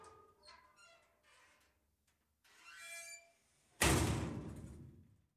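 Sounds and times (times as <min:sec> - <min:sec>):
locker door slam: 0:03.8 - 0:04.7.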